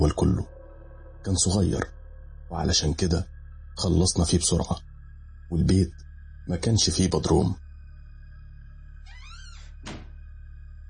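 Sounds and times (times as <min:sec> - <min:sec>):
speech: 0:00.0 - 0:00.6, 0:01.2 - 0:04.9, 0:05.5 - 0:07.6
door on the upper floor of a house creaking: 0:09.0 - 0:10.3
door on the upper floor of a house slamming shut: 0:09.1 - 0:10.2.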